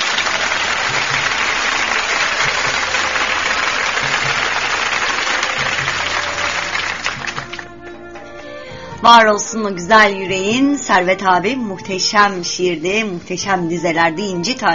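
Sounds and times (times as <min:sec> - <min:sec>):
applause: 0:00.0 - 0:07.8
speech: 0:09.1 - 0:14.7.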